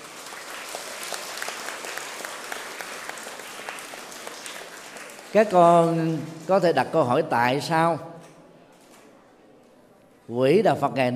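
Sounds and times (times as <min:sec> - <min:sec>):
children clapping: 0:00.0 - 0:06.5
speech: 0:05.3 - 0:08.1, 0:10.3 - 0:11.1.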